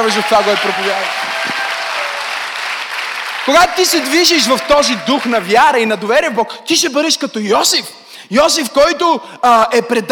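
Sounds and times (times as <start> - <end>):
speech: 0.0 - 1.6, 3.4 - 10.0
audience applause: 0.0 - 5.9.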